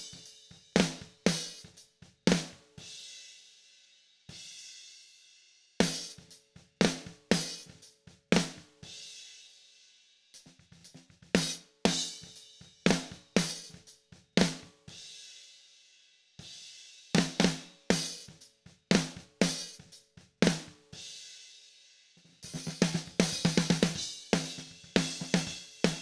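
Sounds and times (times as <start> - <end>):
snare drum: 0.0 - 2.7, 5.8 - 8.8, 10.4 - 14.8, 17.2 - 21.0, 22.4 - 25.9.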